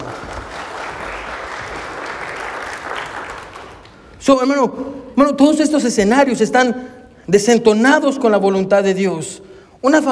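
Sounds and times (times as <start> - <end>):
audience applause: 0.0 - 4.1
speech: 4.2 - 10.0.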